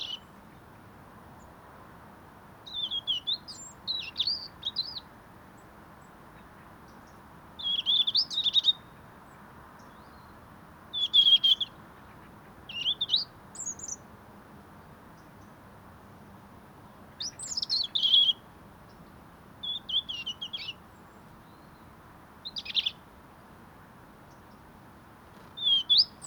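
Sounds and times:
European robin singing: 0.0 - 0.3, 2.7 - 5.7, 6.9 - 9.0, 10.9 - 14.1, 17.1 - 23.0, 25.5 - 26.2.

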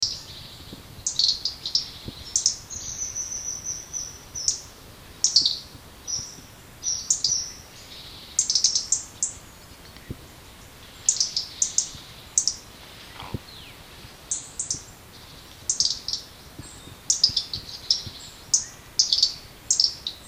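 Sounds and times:
European robin ticking calls: 0.0 - 20.2.

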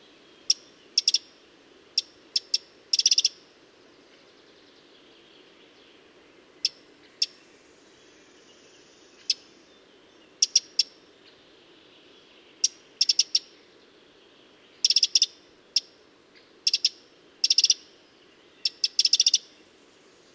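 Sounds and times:
Eurasian wren Troglodytes troglodytes ticking: 0.5 - 1.3, 1.9 - 3.4, 10.4 - 10.9, 12.6 - 13.5, 14.8 - 16.0, 16.6 - 17.9, 18.6 - 19.4.

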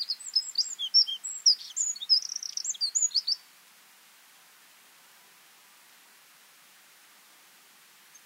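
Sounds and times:
Eurasian wren Troglodytes troglodytes singing: 0.0 - 3.4.

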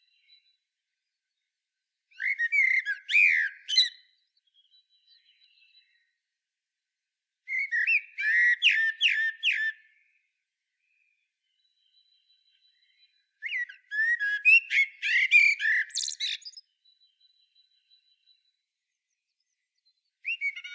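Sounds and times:
common blackbird singing: 2.1 - 6.1, 7.5 - 10.2, 10.8 - 20.7.

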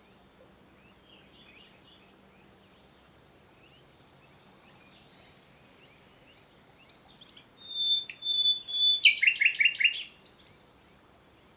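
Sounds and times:
common nightingale song: 5.8 - 10.6.

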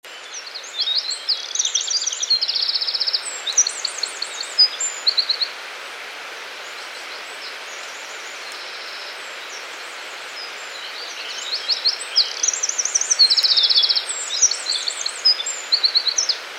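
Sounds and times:
Eurasian wren singing: 0.0 - 5.6, 6.7 - 16.4.

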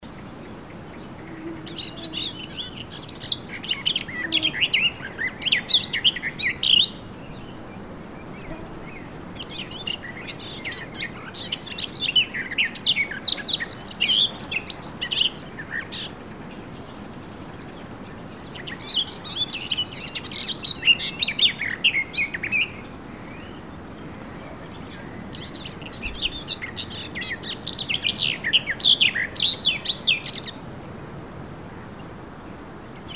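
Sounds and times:
Eurasian blackcap song: 0.0 - 30.6.

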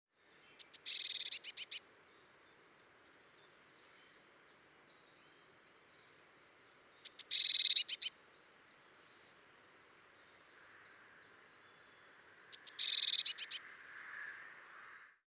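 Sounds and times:
Eurasian blue tit calls: 7.0 - 8.1, 12.5 - 14.3.

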